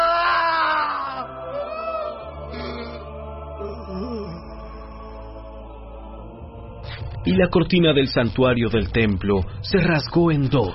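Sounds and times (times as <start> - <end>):
anguished human cry trailing into a final dying breath: 0.0 - 3.0, 3.6 - 4.6
speech: 7.3 - 10.7.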